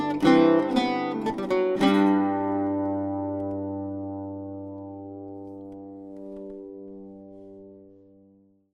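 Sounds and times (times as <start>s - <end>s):
bouzouki: 0.0s - 8.5s
octave mandolin: 0.0s - 8.6s.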